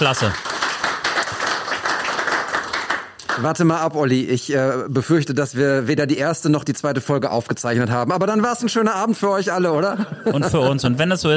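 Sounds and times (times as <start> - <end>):
speech: 0.0 - 0.5, 3.4 - 11.3
audience applause: 0.0 - 3.5
laughter: 9.7 - 11.2.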